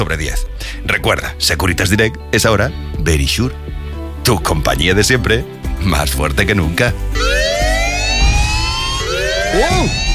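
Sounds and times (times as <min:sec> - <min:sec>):
speech: 0:00.0 - 0:07.4, 0:09.5 - 0:10.1
wailing alarm siren: 0:07.1 - 0:10.1.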